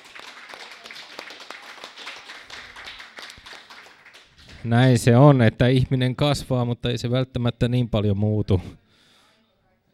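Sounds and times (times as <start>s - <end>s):
audience applause: 0.0s - 4.7s
speech: 4.6s - 8.8s.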